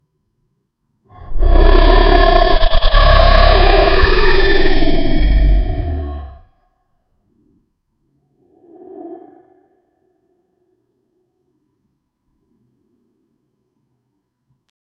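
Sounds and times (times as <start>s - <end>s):
sea dragon roar: 1.2s - 6.5s.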